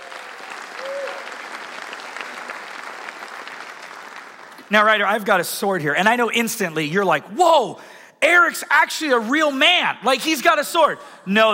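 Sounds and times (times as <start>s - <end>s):
audience applause: 0.0s - 5.0s
speech: 4.7s - 11.5s.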